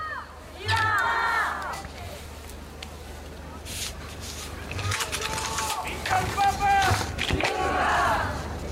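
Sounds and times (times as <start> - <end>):
crowd cheering and chanting for the Pope: 0.0 - 2.0, 4.8 - 8.6.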